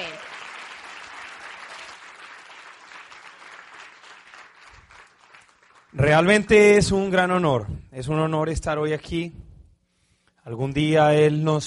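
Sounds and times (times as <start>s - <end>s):
audience applause: 0.0s - 6.2s
speech: 5.9s - 9.4s, 10.4s - 11.6s.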